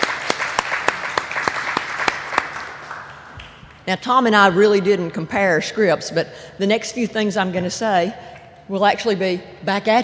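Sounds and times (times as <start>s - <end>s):
audience applause: 0.0s - 3.4s
speech: 3.9s - 10.0s.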